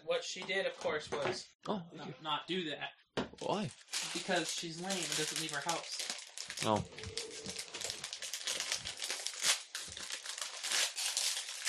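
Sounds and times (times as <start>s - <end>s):
speech: 0.1s - 7.2s
licorice package crinkling as it is torn open: 3.4s - 11.6s.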